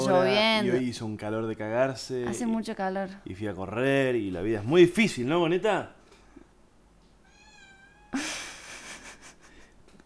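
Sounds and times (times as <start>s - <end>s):
speech: 0.1s - 6.0s
cat meowing: 7.2s - 8.2s.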